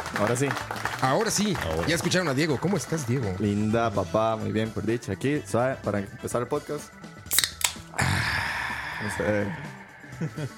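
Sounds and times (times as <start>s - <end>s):
speech: 0.2s - 7.1s, 9.0s - 10.5s
beer bottle cap metallic clicks: 7.2s - 8.0s.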